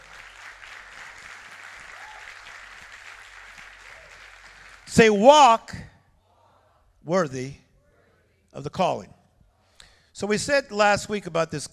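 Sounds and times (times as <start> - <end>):
audience clapping: 0.0 - 5.2
speech: 4.9 - 5.8, 7.1 - 7.6, 8.6 - 9.1, 10.2 - 11.7.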